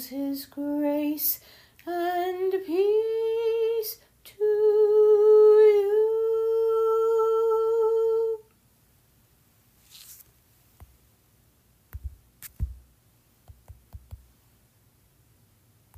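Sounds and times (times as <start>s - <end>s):
a cappella singing: 0.0s - 8.5s.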